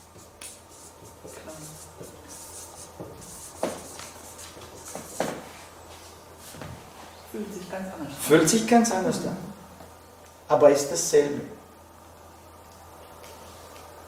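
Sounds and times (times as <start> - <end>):
pen strokes on paper handwriting a word: 0.2 - 5.3
speech: 7.4 - 9.6, 10.5 - 11.6.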